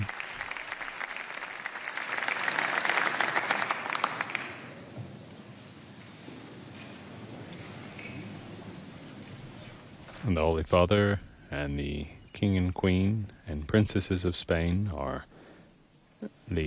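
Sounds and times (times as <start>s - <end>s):
sustained applause: 0.0s - 4.9s
speech: 10.3s - 15.4s, 16.2s - 16.6s.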